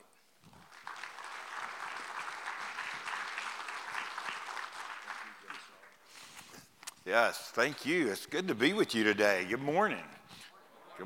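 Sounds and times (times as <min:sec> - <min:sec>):
audience applause: 0:00.4 - 0:06.0
speech: 0:07.1 - 0:10.2.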